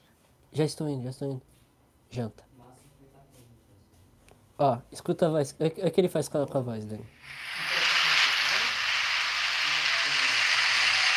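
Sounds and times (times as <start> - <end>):
speech: 0.6 - 2.5, 4.6 - 7.4
live audience applause: 7.4 - 11.1.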